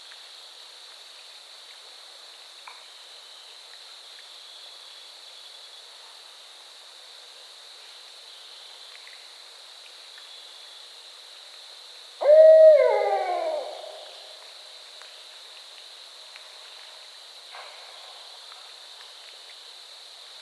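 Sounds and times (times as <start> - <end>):
barred owl hooting: 12.2 - 14.2.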